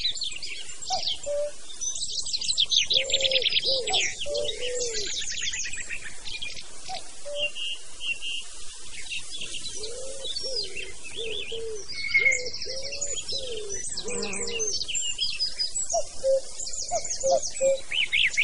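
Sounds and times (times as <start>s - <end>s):
cuckoo in a forest: 0.9s - 1.7s, 2.5s - 5.8s, 6.9s - 7.8s, 9.4s - 15.2s, 15.9s - 18.4s.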